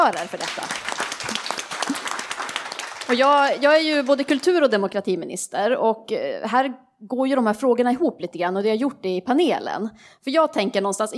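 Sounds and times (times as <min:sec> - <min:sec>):
speech: 0:00.0 - 0:01.5, 0:03.1 - 0:11.1
audience applause: 0:00.0 - 0:04.4.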